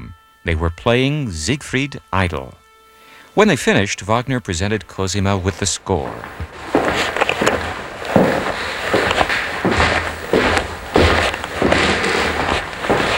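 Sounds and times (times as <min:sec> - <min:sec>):
speech: 0:00.4 - 0:02.6, 0:03.4 - 0:07.6
footsteps on wide oak stairs in a house in Switzerland: 0:05.4 - 0:13.1.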